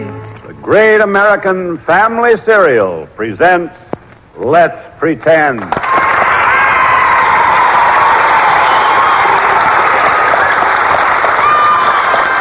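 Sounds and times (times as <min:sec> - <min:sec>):
speech: 0:00.6 - 0:03.8, 0:04.4 - 0:05.9
studio audience applauding: 0:05.6 - 0:12.3.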